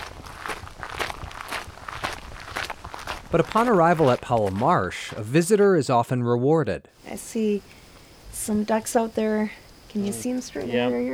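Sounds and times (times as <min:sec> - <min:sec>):
footsteps crunching: 0:00.0 - 0:05.8
speech: 0:03.3 - 0:07.8, 0:08.4 - 0:11.1.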